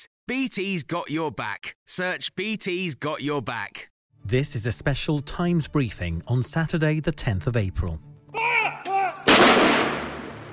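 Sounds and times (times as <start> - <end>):
speech: 0.0 - 8.1
cannon boom from gun salute marking the death of the Duke of Edinburgh: 9.2 - 10.5.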